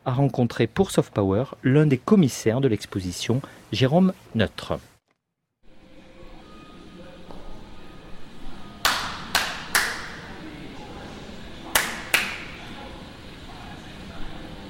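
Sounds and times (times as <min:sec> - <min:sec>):
speech: 0:00.1 - 0:04.9
hand claps in a reverberant room: 0:08.8 - 0:10.3, 0:11.7 - 0:12.6.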